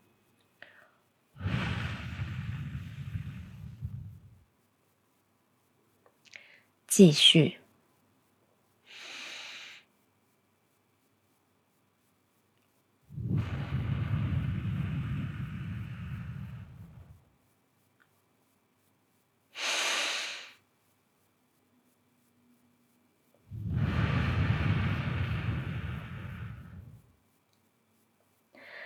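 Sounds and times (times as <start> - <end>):
slow exhales through the mouth during a guided breathing exercise: 0.6 - 4.4, 13.1 - 17.2, 19.6 - 20.6, 23.5 - 27.1
hissy inhales: 0.6 - 4.5, 8.8 - 9.9, 13.1 - 17.3, 19.5 - 20.6, 23.4 - 27.2, 28.6 - 28.8
speech: 6.9 - 7.6.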